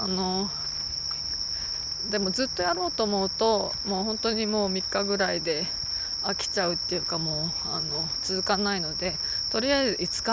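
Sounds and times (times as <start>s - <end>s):
speech: 0.0s - 0.6s, 2.0s - 10.3s
bell cricket ringing: 0.0s - 10.3s.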